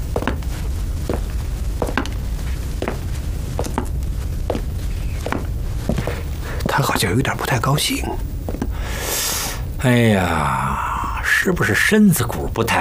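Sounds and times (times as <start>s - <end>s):
footsteps of a commander walking away: 0.0s - 8.8s
low noise: 0.0s - 12.8s
speech: 7.0s - 8.3s, 9.8s - 10.8s, 11.4s - 12.8s.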